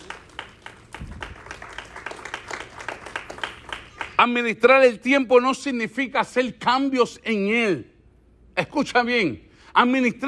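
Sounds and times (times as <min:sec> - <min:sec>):
audience applauding: 0:00.0 - 0:04.4
speech: 0:04.2 - 0:07.9, 0:08.6 - 0:10.2.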